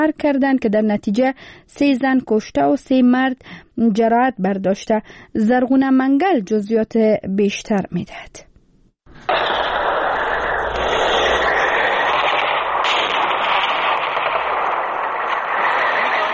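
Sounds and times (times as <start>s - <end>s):
speech: 0.0s - 8.5s
heavy gunfire from clashes between Afghan and Pakistani forces in Barikot, Kunar: 9.3s - 16.3s.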